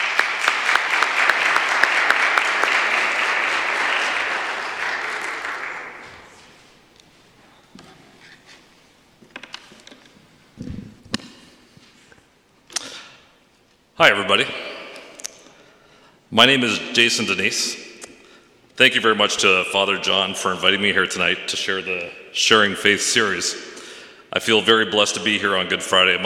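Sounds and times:
crowd applause: 0:00.0 - 0:06.5
speech: 0:14.0 - 0:14.6, 0:16.3 - 0:17.8, 0:18.8 - 0:23.7, 0:24.4 - 0:26.2.

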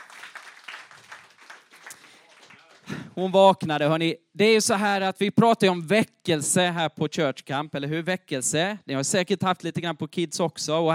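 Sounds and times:
audience applause: 0:00.0 - 0:03.2
speech: 0:03.2 - 0:10.9.

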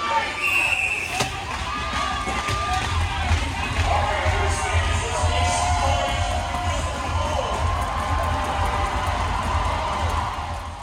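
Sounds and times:
hockey rink crowd roaring and cheering: 0:00.0 - 0:10.8
whistles: 0:00.3 - 0:01.4.

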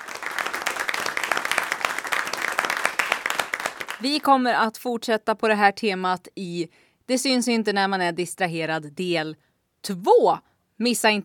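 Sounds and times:
group applause: 0:00.0 - 0:04.3
speech: 0:04.0 - 0:11.2.

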